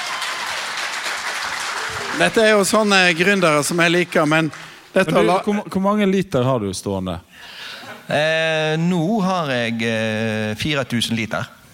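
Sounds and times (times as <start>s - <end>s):
audience applause: 0.0s - 5.3s
speech: 2.2s - 11.6s.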